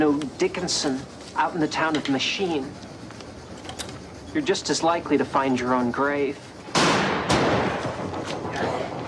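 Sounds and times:
speech: 0.0 - 2.9, 4.4 - 6.5
gunshots while shooting buffalo: 6.7 - 8.9.

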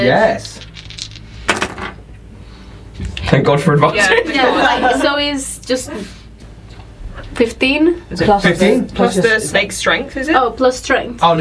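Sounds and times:
speech: 0.0 - 0.7, 3.3 - 6.2, 7.4 - 11.3
faint hum: 0.0 - 11.3
dice rolling on a hard table: 0.4 - 2.0
laughter: 4.0 - 5.4.

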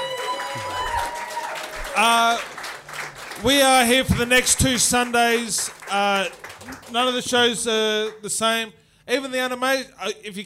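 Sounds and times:
audience applause: 0.0 - 7.6
speech: 2.0 - 2.5, 3.4 - 10.4.

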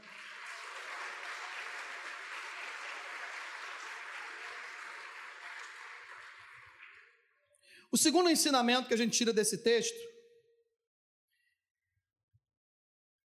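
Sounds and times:
audience applauding: 0.0 - 7.2
speech: 7.9 - 10.2.

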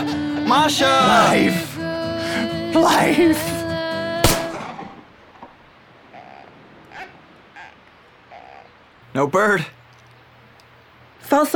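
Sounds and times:
speech: 0.5 - 1.7, 2.3 - 3.6, 9.2 - 9.8, 11.2 - 11.5
gunshot: 4.2 - 5.1.

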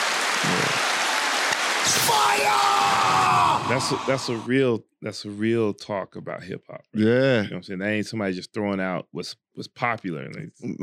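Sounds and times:
round of applause: 0.0 - 4.5
speech: 2.1 - 2.8, 3.7 - 10.8.

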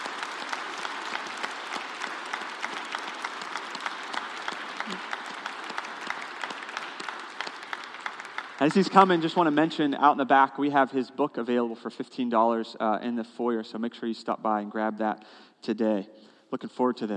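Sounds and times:
church congregation applauding to welcome a guest speaker: 0.0 - 10.5
speech: 8.6 - 17.1.

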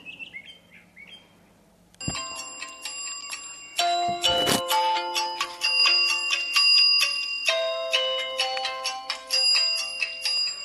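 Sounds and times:
birds chirping: 0.0 - 1.6
alarm clock ringing with an electronic melody: 2.0 - 10.6.

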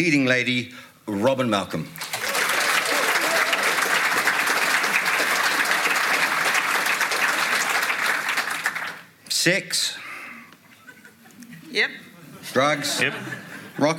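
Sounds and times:
speech: 0.0 - 2.1, 9.4 - 10.0, 11.7 - 13.9
audience applause at a Waitakere event for a show's creators and actress: 2.0 - 9.2
laughter: 10.6 - 13.9.

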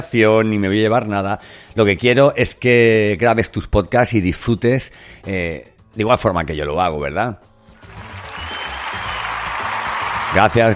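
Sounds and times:
speech: 0.0 - 7.5, 10.3 - 10.7
audience applause: 7.8 - 10.7.

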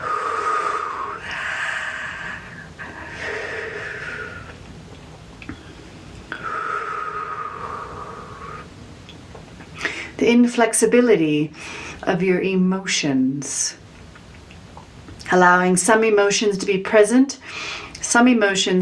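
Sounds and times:
deep breaths drawn into the belly during a guided meditation: 0.0 - 4.7, 5.4 - 8.8, 11.6 - 12.0, 17.4 - 18.0
speech: 10.3 - 13.8, 15.3 - 18.8.

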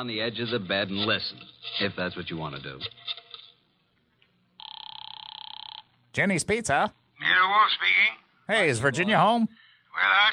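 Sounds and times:
speech: 0.0 - 3.2, 6.1 - 10.3
telephone ringing: 4.6 - 6.0.

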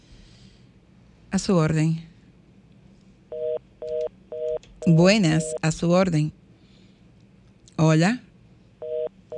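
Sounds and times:
faint low hum: 0.0 - 9.3
speech: 1.3 - 2.1, 4.9 - 6.4, 7.8 - 8.3
dual-pitched telephone call line tone beeps: 3.3 - 5.6, 8.8 - 9.3.

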